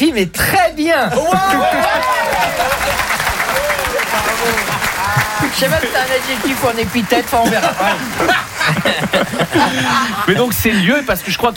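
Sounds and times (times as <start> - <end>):
speech: 0.0 - 11.5
laughter: 1.1 - 11.5
voices shouting: 1.2 - 8.6
crowd applause: 1.3 - 11.5.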